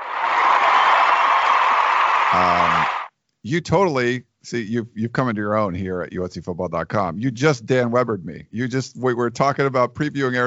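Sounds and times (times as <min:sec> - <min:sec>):
applause sound effect: 0:00.0 - 0:03.1
speech: 0:02.3 - 0:10.4.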